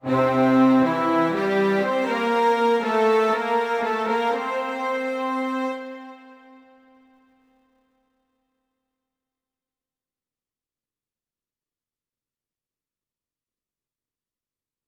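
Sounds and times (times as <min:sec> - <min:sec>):
music: 0:00.0 - 0:08.2.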